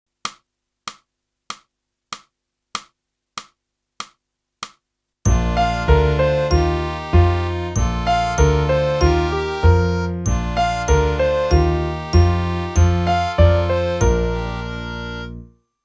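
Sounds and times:
saxophone: 5.3s - 15.5s.

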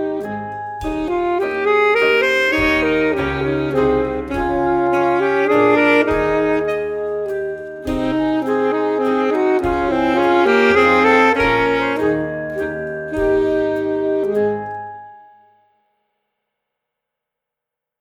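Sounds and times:
full saxophone playing: 0.0s - 15.2s.

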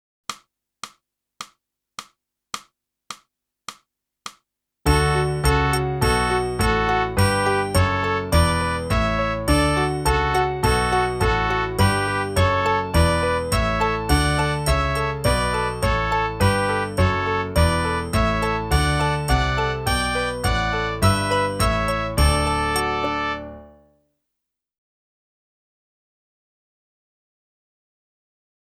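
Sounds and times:
clarinet: 4.9s - 23.8s.

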